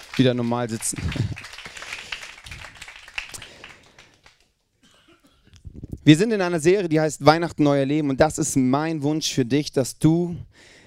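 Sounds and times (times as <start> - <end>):
audience applause: 0.0 - 4.5
speech: 0.2 - 1.3, 6.1 - 10.8.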